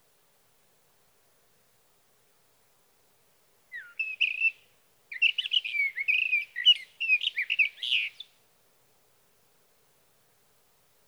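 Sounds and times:
Sage thrasher warbling song: 3.7 - 8.2.

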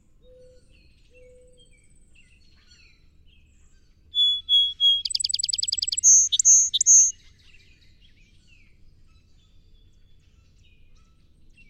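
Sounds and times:
song sparrow whistles and trill: 4.2 - 7.1.

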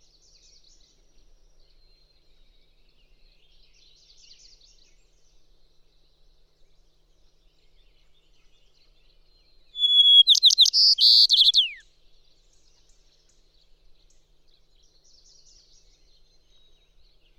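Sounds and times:
White-crowned Sparrow calling: 9.8 - 11.8.

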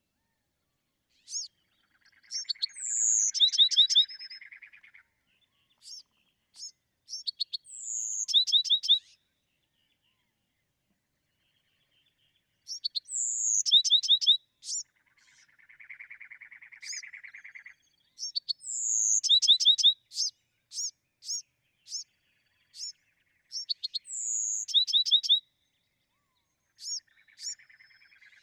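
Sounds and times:
Bewick's wren whistled song: 2.3 - 4.5, 6.6 - 9.1, 12.7 - 14.8, 18.2 - 22.1, 23.6 - 25.4.

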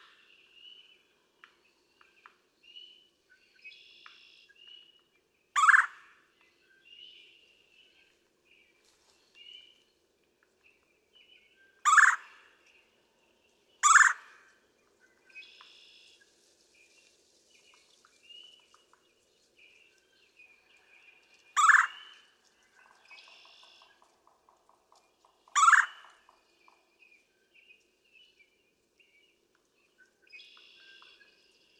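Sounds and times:
red-bellied woodpecker churring: 5.6 - 5.9, 11.9 - 12.3, 13.8 - 14.2, 21.5 - 21.9, 25.5 - 26.1.

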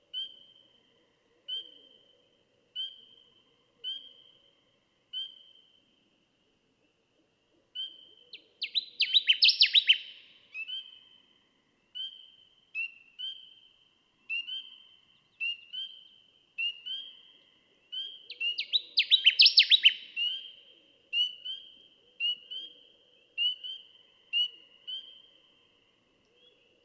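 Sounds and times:
Connecticut warbler song: 7.8 - 11.2, 11.9 - 26.8.

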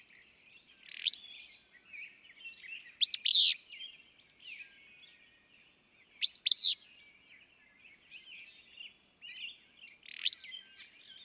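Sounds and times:
small birds twittering: 0.0 - 11.2.

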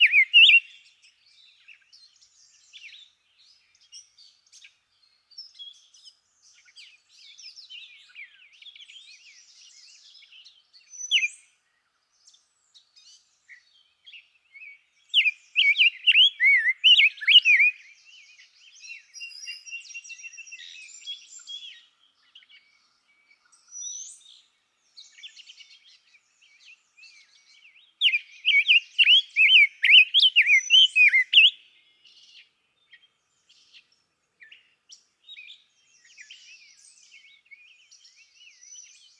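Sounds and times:
Rose-breasted Grosbeak: 0.0 - 0.8, 15.2 - 17.8, 28.0 - 31.7.

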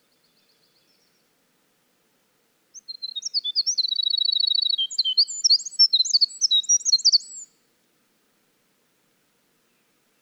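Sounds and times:
winter wren singing: 2.8 - 7.5.

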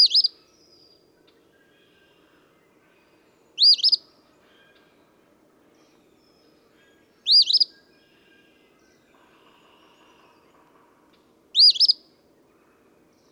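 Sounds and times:
Eastern phoebe song: 0.0 - 0.4, 3.6 - 4.0, 7.3 - 7.7, 11.6 - 12.0.

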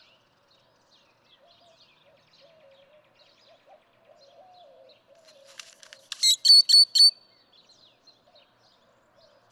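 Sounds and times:
great-tailed grackle song: 6.1 - 7.2.

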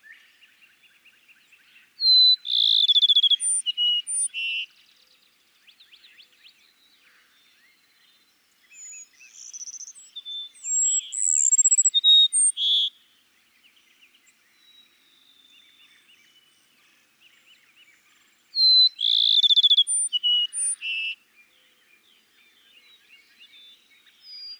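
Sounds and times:
Cassin's sparrow song: 2.0 - 4.5, 10.6 - 12.8, 18.6 - 21.1.

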